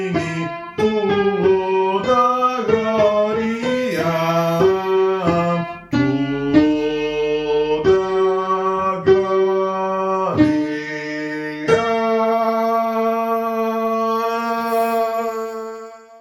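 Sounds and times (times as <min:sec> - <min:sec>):
first tenors singing: 0:00.0 - 0:15.9.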